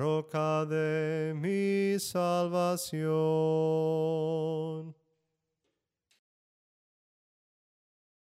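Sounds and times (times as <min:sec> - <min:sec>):
soprano singing hymns: 0:00.0 - 0:04.9.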